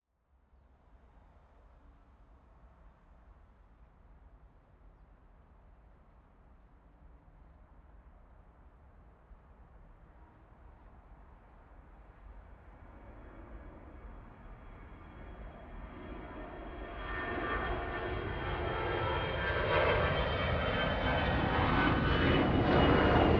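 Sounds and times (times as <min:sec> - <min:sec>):
planes taking off: 0:10.1 - 0:23.3.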